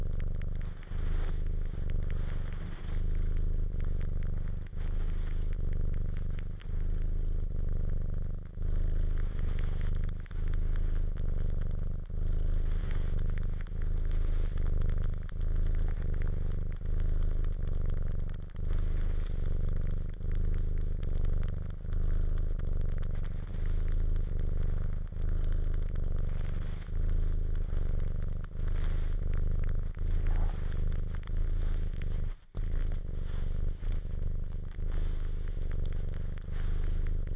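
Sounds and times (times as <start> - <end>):
cat purring: 0.0 - 37.3.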